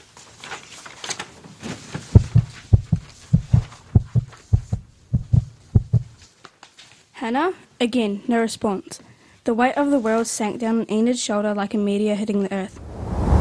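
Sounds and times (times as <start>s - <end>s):
heartbeat thumping faster: 2.2s - 6.2s
speech: 7.2s - 12.8s.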